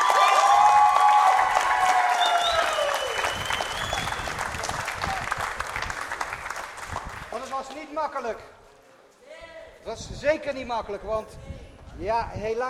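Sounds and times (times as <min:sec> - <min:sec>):
audience applause: 0:00.0 - 0:07.5
speech: 0:08.0 - 0:08.6, 0:09.8 - 0:12.6.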